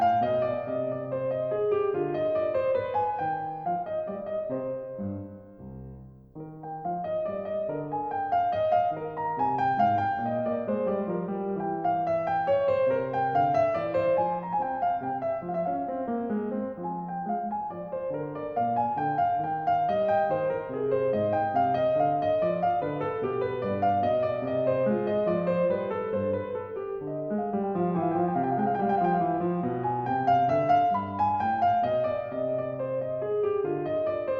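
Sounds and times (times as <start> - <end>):
piano minuet in C minor: 0.0 - 34.3.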